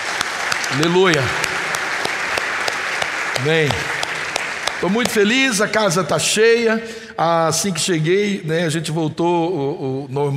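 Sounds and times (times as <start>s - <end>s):
audience applause: 0.0s - 5.7s
speech: 0.7s - 1.5s, 3.4s - 4.0s, 4.8s - 10.3s.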